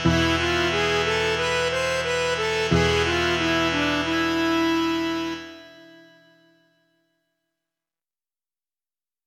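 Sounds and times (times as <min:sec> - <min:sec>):
musical accompaniment: 0:00.0 - 0:07.0.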